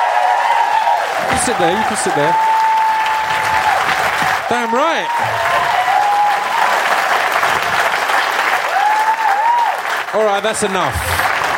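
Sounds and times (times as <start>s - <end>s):
live show audience clapping: 0.0s - 11.5s
speech: 1.4s - 2.5s, 4.5s - 5.8s, 10.1s - 11.2s.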